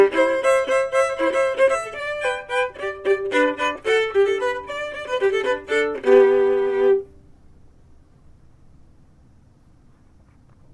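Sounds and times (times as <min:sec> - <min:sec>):
fiddle chords in reels: 0:00.0 - 0:07.2.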